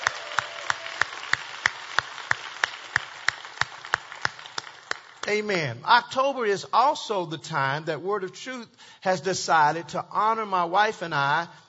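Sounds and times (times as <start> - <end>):
audience applauding: 0.0 - 5.4
sharp rhythmic unison clapping: 0.0 - 5.5
speech: 5.3 - 11.6.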